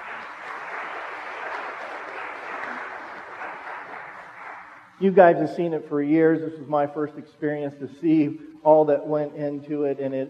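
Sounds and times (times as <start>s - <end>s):
crowd clapping: 0.0s - 5.2s
speech: 5.0s - 10.2s.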